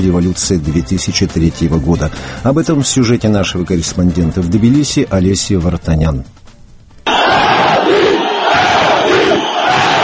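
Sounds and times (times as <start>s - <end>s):
speech: 0.0s - 6.4s
large protest crowd chanting: 7.1s - 10.0s.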